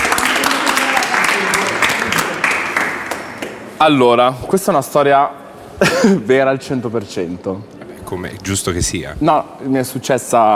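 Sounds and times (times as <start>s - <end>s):
audience applause of encouragement: 0.0s - 3.5s
speech: 3.8s - 10.5s.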